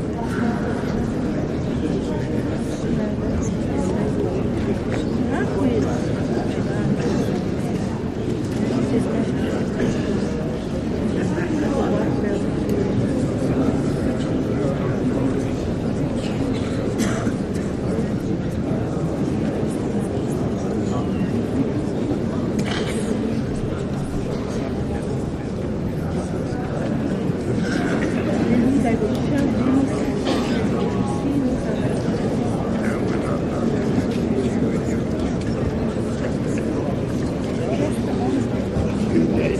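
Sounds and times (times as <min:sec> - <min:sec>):
stadium crowd buzz and murmurs: 0:00.0 - 0:39.5.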